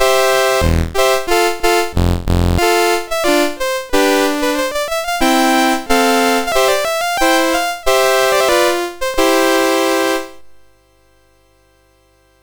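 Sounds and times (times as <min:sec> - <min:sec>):
MOS6581R4 SID chip music: 0:00.0 - 0:10.4.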